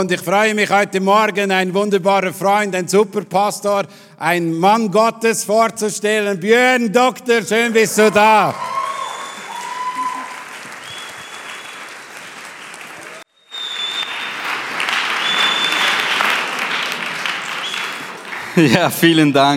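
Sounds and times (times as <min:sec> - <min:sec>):
speech: 0:00.0 - 0:08.8, 0:18.6 - 0:19.5
audience clapping: 0:08.1 - 0:19.5.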